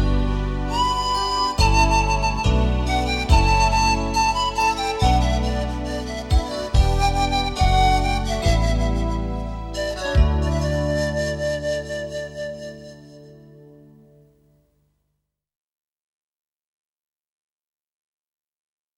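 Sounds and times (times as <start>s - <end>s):
flute: 0.0s - 14.2s.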